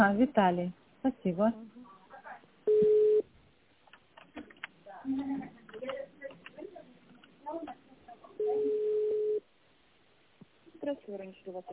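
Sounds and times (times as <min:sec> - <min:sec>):
speech: 0:00.0 - 0:01.9, 0:04.4 - 0:06.0, 0:10.8 - 0:11.7
telephone line tones while a call is being transferred: 0:02.7 - 0:03.2, 0:08.4 - 0:09.4.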